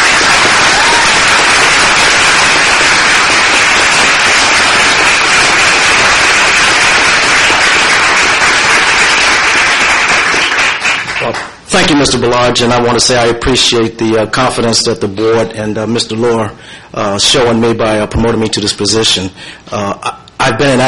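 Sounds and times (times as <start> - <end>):
large crowd applauding: 0.0 - 11.6
speech: 12.0 - 20.8.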